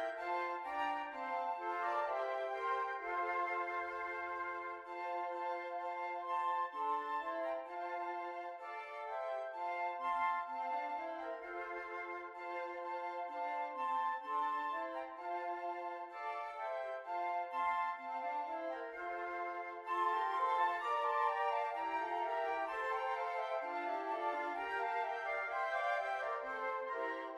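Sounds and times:
flute quartet playing: 0:00.0 - 0:27.3.

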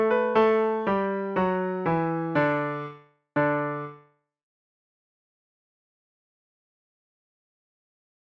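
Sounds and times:
piano solo: 0:00.0 - 0:04.0.

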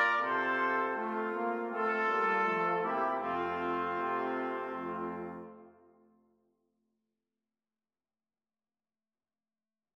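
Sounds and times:
brass quartet playing: 0:00.0 - 0:06.0.

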